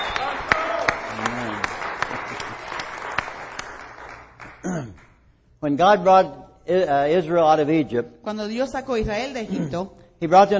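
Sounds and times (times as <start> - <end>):
warm applause: 0.0 - 5.0
speech: 5.6 - 10.5.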